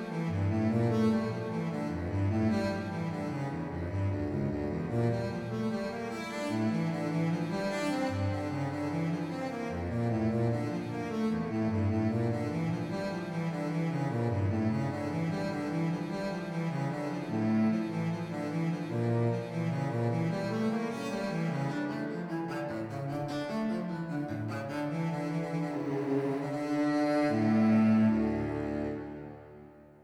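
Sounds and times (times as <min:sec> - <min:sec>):
cello alto music: 0:00.0 - 0:30.0.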